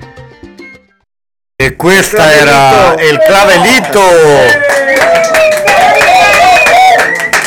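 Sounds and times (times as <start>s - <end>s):
speech: 1.6s - 5.8s
live audience applause: 2.2s - 7.4s.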